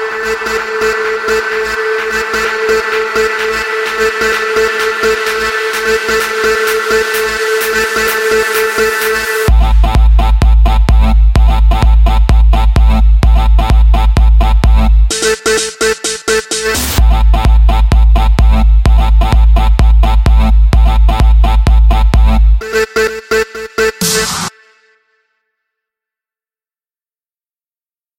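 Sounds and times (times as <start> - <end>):
construction kit full music loop: 0.0 - 24.5.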